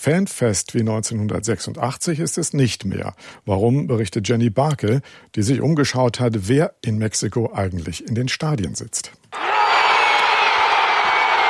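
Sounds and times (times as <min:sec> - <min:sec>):
speech: 0:00.0 - 0:09.4
crowd of about 83,000 cheering in Mexico City's Azteca stadium: 0:09.4 - 0:11.4.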